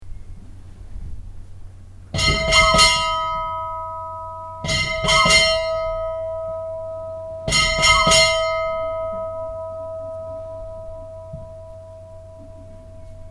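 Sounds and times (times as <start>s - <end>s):
church bells at Stadarbakkakirkja after mass: 2.2s - 13.2s.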